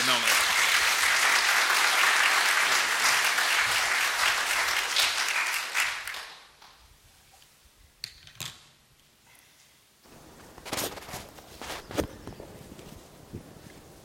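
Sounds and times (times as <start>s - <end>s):
audience applause welcoming a speaker: 0.0s - 6.5s.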